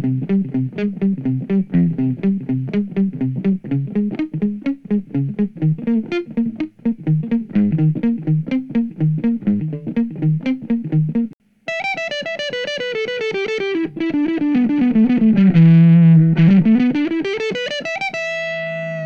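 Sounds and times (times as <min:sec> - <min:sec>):
electric guitar through a tube guitar amplifier: 0:00.0 - 0:19.0.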